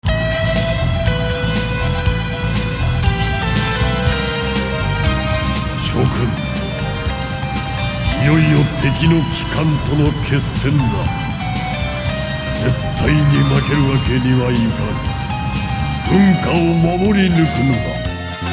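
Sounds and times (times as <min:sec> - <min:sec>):
cinema music: 0:00.0 - 0:18.5
voice-over: 0:05.6 - 0:07.0, 0:08.0 - 0:11.4, 0:12.5 - 0:15.2, 0:16.0 - 0:18.1.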